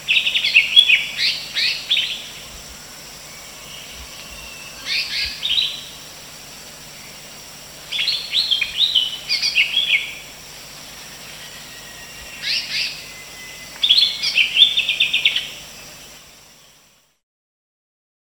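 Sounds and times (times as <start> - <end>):
female cucak hijau call: 0.0 - 16.9.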